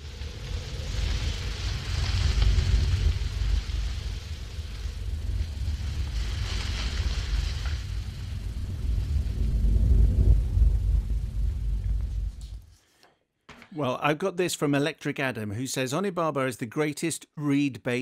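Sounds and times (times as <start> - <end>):
wind blowing through giant swamp grasses: 0.0 - 12.6
speech: 13.8 - 18.0.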